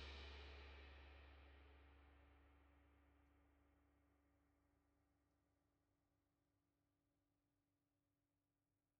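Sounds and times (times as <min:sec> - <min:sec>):
drum overheads: 0:00.0 - 0:03.2.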